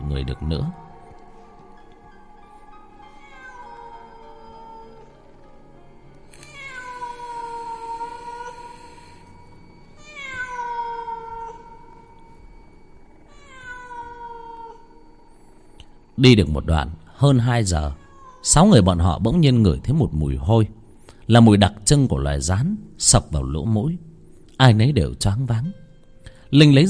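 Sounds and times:
feral cat yowling: 0:00.0 - 0:05.4, 0:06.4 - 0:09.3, 0:10.0 - 0:12.2, 0:13.3 - 0:15.1, 0:17.8 - 0:18.6
faint hum: 0:00.0 - 0:26.8
speech: 0:00.2 - 0:00.8, 0:16.2 - 0:25.8, 0:26.5 - 0:26.8.

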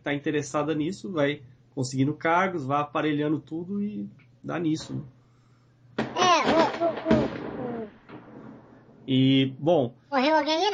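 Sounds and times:
speech: 0:00.0 - 0:05.2, 0:06.4 - 0:07.5, 0:09.1 - 0:10.7
explosion: 0:06.0 - 0:08.9.

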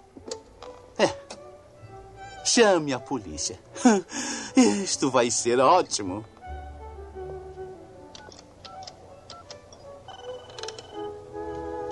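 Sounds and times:
speech: 0:01.0 - 0:01.2, 0:02.5 - 0:06.4
telephone ringing with bright electronic tones: 0:08.2 - 0:11.2.

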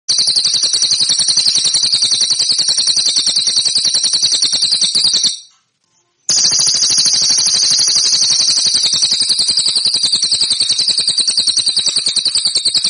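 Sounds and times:
cililin song metallic trill: 0:00.1 - 0:05.6, 0:06.3 - 0:12.8.

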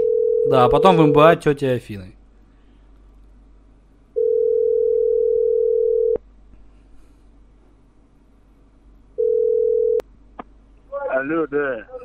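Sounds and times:
telephone line tone while a call is being placed: 0:00.0 - 0:01.3, 0:04.2 - 0:06.2, 0:09.2 - 0:10.0
speech: 0:00.5 - 0:02.2, 0:11.2 - 0:12.0.

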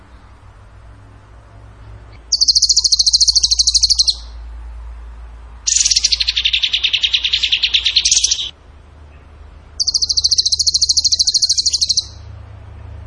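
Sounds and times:
bird buzzy trills: 0:02.1 - 0:04.4, 0:05.6 - 0:08.6, 0:09.8 - 0:12.3.

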